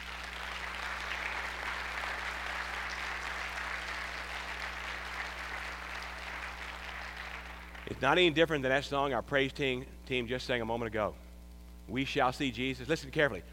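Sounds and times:
audience applause: 0.0 - 8.0
speech: 7.9 - 11.2, 11.9 - 13.5.

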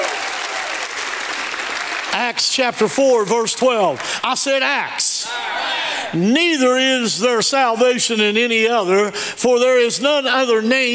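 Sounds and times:
audience applause: 0.0 - 2.5
speech: 2.2 - 10.9.

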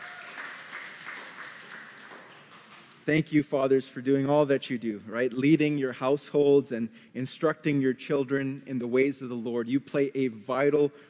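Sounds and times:
audience applause: 0.0 - 2.9
speech: 3.1 - 11.0.

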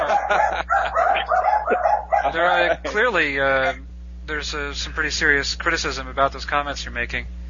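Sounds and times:
dogs barking: 0.0 - 2.9
laughter: 0.0 - 3.8
speech: 0.3 - 7.4.

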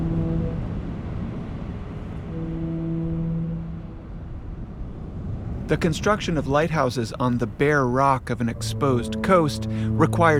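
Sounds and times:
foghorns: 0.0 - 4.8, 8.3 - 10.3
speech: 5.7 - 10.3.

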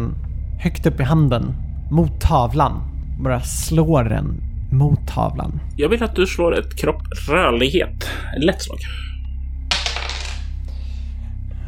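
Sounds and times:
steady low hum: 0.0 - 11.6
speech: 0.6 - 9.0
dice clattering across a hard surface: 9.7 - 10.6.

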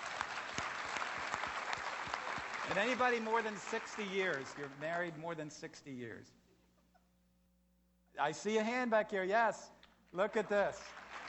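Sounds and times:
audience applause: 0.0 - 4.8, 10.9 - 11.2
speech: 2.7 - 6.4, 8.2 - 11.0.

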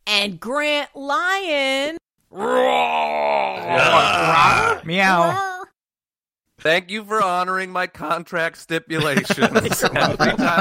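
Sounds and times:
speech: 0.2 - 5.5, 6.6 - 10.6
people imitating a roar: 2.3 - 5.4
laughter: 9.0 - 10.6.

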